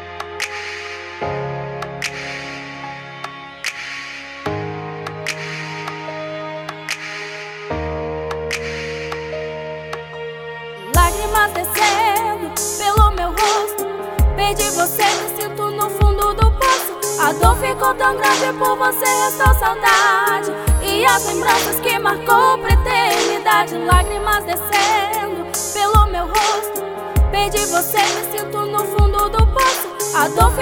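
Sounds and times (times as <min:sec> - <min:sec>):
rap music: 0:11.0 - 0:30.6.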